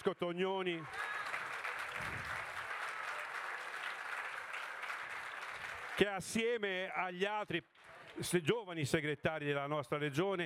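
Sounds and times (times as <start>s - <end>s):
speech: 0.0s - 1.2s, 6.0s - 10.4s
audience applause: 0.8s - 6.4s.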